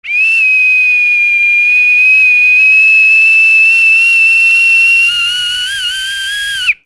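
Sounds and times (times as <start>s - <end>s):
whistles: 0.0s - 6.8s.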